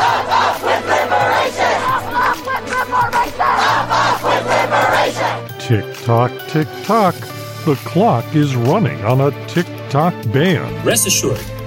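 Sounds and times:
protest crowd chanting on college campus: 0.0s - 5.5s
speech: 5.7s - 11.6s.

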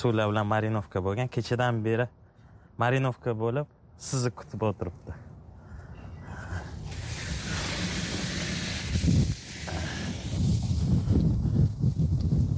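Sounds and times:
speech: 0.0s - 2.2s, 2.8s - 5.3s
wind blowing outdoors on a windy day: 5.6s - 12.5s.

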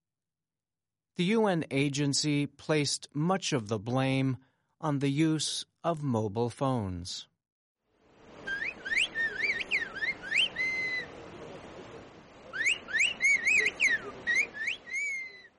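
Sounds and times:
speech: 1.2s - 7.3s
whistled language communication: 8.5s - 11.1s, 12.5s - 15.5s.

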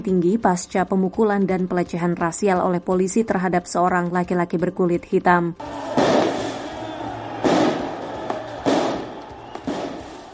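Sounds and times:
speech: 0.0s - 6.3s
shots fired in Paris releasing acrid smoke: 5.8s - 10.3s.

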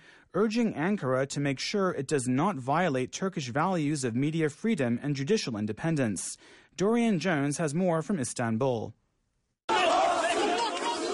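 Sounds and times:
speech: 0.4s - 9.0s
hundreds of people chanting during a police raid on the Zaman newspaper in Istanbul: 9.7s - 11.1s.

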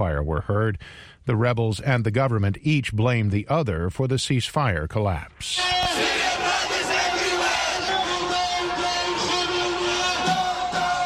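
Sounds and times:
speech: 0.2s - 6.2s
large protest crowd chanting and shouting: 5.6s - 11.0s.

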